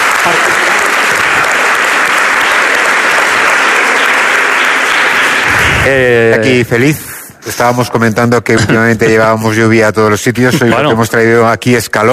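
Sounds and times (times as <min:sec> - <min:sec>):
audience applause: 0:00.0 - 0:06.2
speech: 0:05.9 - 0:12.1.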